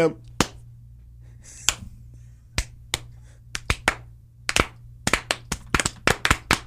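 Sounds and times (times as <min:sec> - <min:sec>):
hands clapping to swat a gnat: 0:00.3 - 0:00.6, 0:01.6 - 0:01.9, 0:02.6 - 0:06.6.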